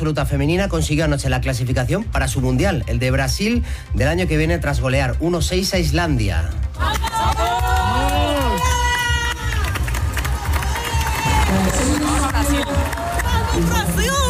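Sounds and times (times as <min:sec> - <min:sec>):
speech: 0:00.0 - 0:07.4
football players shouting and cheering in victory celebration: 0:06.8 - 0:14.2.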